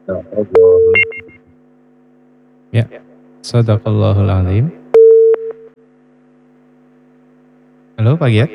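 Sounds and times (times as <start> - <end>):
speech: 0.0 - 1.4, 2.7 - 4.8, 8.0 - 8.5
telephone busy tone as a call line disconnects: 0.6 - 1.4, 5.0 - 5.7.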